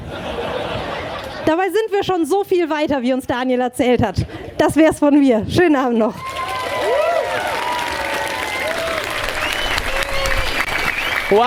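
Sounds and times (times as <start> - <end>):
laughter: 0.0 - 1.6
speech: 1.5 - 6.4
audience applause: 6.2 - 11.4.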